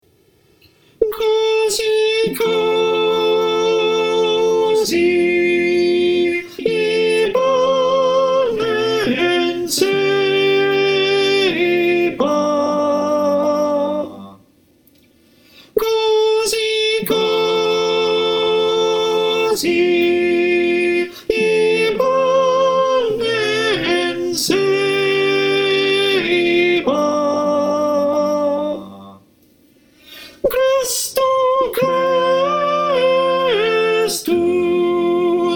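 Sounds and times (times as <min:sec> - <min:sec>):
choir with soprano: 0:01.0 - 0:14.4, 0:16.0 - 0:29.2, 0:30.5 - 0:35.5.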